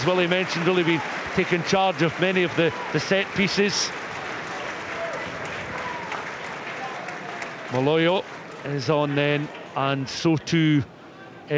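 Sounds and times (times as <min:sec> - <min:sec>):
speech: 0:00.0 - 0:04.0, 0:07.7 - 0:11.5
stadium crowd applause: 0:00.0 - 0:10.4.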